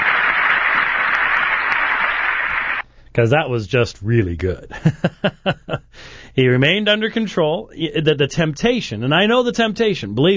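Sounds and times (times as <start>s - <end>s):
audience applause: 0.0s - 2.8s
speech: 3.2s - 5.8s, 6.4s - 10.3s
laughter: 4.7s - 5.9s.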